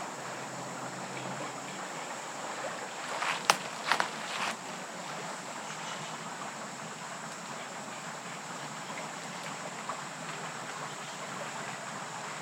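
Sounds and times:
bubbling stream in West Michigan woods: 0.0s - 12.3s
sharp cracks and rustles: 3.1s - 4.6s.

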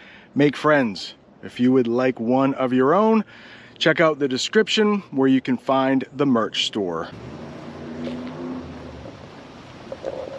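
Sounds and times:
speech: 0.4s - 7.6s
car engines roaring while racing on nearby road: 7.0s - 10.3s.

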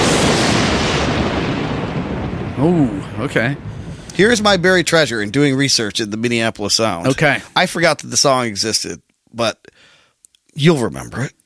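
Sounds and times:
lightning sound effect: 0.0s - 7.4s
speech: 2.6s - 9.7s, 10.6s - 11.4s.

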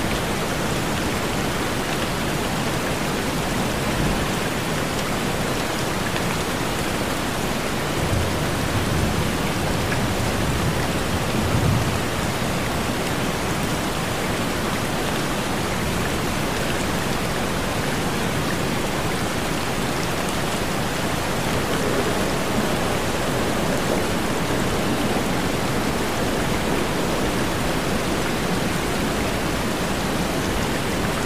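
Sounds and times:
rain and a tropical waterfall roaring: 0.0s - 31.2s.

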